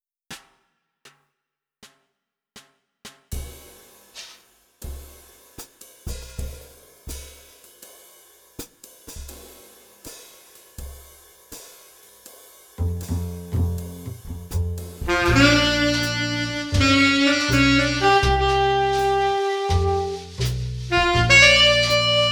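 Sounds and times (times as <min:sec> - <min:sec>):
backing track without piano: 0:12.8 - 0:22.2.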